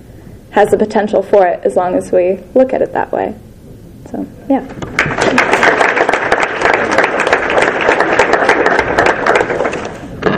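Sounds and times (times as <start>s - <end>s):
speech: 0.5s - 3.4s, 4.1s - 5.8s
audience applause for panelists: 4.9s - 10.1s.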